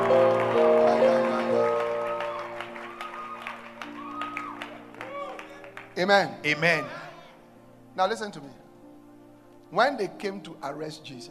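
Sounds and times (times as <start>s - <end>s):
church congregation clapping for the Lord: 0.0s - 6.7s
speech: 6.0s - 7.0s, 8.0s - 8.6s, 9.7s - 11.2s.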